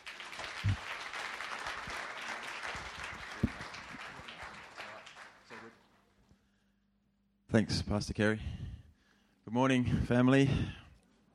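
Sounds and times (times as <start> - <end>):
church congregation applauding to welcome guests during a service: 0.0 - 6.0
speech: 7.6 - 8.6, 9.5 - 10.8.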